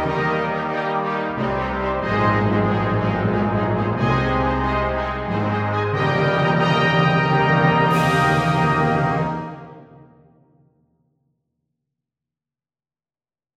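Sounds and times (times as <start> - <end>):
triumphant fanfare: 0.0 - 10.2.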